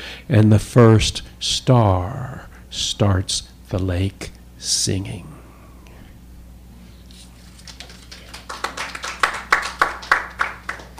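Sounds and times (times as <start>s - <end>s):
speech: 0.3s - 5.4s
audience applause: 7.7s - 10.9s.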